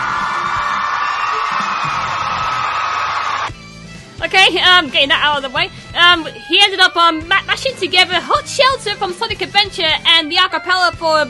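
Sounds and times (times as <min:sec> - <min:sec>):
applause and cheering: 0:00.0 - 0:03.6
speech: 0:04.4 - 0:11.2.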